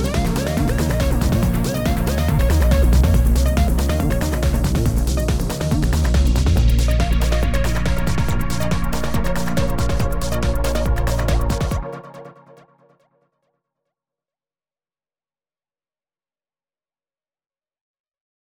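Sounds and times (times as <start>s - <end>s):
techno music: 0.0s - 12.6s.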